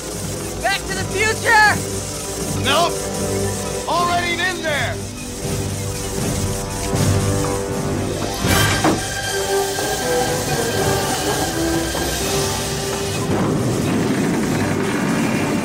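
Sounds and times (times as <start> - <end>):
train taking off: 0.0 - 15.6
speech: 2.6 - 6.4.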